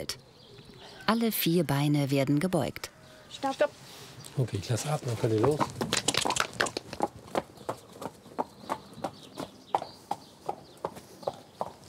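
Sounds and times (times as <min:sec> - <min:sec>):
speech: 0:00.0 - 0:00.2, 0:01.1 - 0:05.8
horse hooves trotting off: 0:04.6 - 0:11.8.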